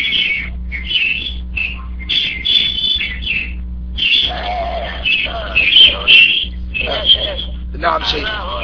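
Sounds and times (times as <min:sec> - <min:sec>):
sparrows chirping loudly: 0:00.0 - 0:07.6
speech: 0:07.9 - 0:08.6.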